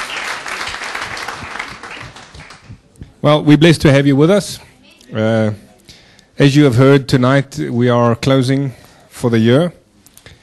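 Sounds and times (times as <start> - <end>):
applause from a church worship-service audience: 0.0 - 2.8
speech: 3.2 - 5.6, 6.4 - 9.8.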